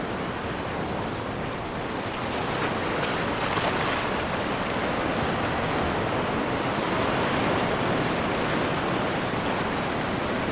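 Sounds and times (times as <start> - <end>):
cricket chirping: 0.0 - 10.5.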